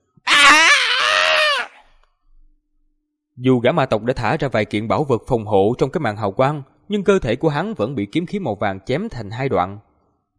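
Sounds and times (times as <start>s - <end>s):
anguished scream sound effect: 0.2s - 1.9s
speech: 3.4s - 10.3s.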